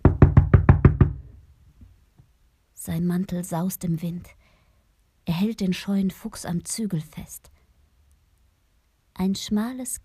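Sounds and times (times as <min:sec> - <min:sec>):
heavy knocking on a wooden gate: 0:00.0 - 0:01.4
speech: 0:02.8 - 0:04.4, 0:05.4 - 0:07.5, 0:09.2 - 0:10.0.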